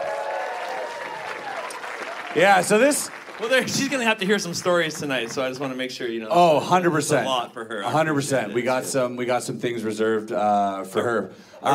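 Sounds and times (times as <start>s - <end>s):
audience applause: 0.0s - 5.9s
speech: 2.3s - 11.7s.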